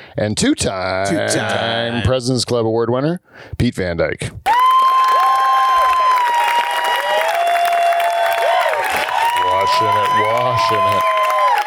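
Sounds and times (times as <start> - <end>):
speech: 0.2 - 4.5, 9.7 - 11.2
audience applause: 4.5 - 11.6.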